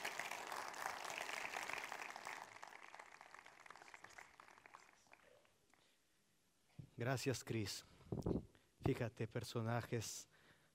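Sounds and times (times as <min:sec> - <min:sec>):
audience applause: 0:00.0 - 0:05.5
speech: 0:07.0 - 0:10.3.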